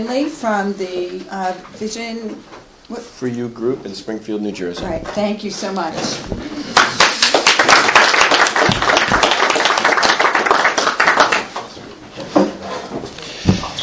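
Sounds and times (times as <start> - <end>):
speech: 0.0 - 6.6
crowd applauding: 6.7 - 11.8.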